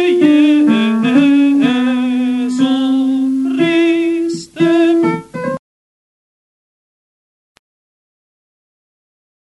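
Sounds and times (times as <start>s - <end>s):
tenor voices singing: 0.0s - 5.2s.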